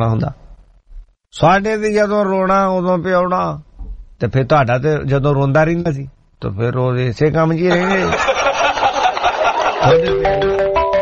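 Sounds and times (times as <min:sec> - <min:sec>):
speech: 0:00.0 - 0:00.5, 0:01.3 - 0:08.4, 0:09.8 - 0:10.6
laughter: 0:07.7 - 0:10.5
telephone ringing with an incoming call: 0:09.8 - 0:11.0.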